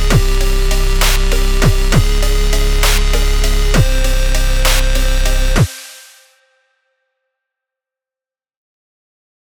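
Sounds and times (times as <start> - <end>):
chiptune music: 0.0 - 5.7.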